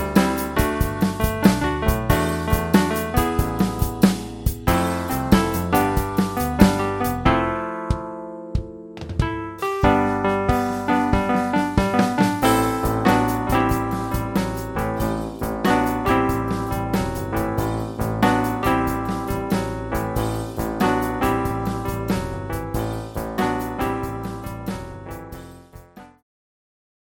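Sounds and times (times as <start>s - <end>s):
Wurlitzer 210 electric piano: 0.0s - 26.2s.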